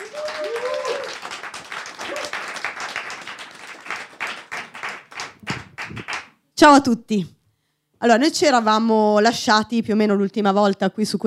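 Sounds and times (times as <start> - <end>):
audience applause: 0.0 - 6.3
speech: 6.6 - 7.4, 8.0 - 11.2.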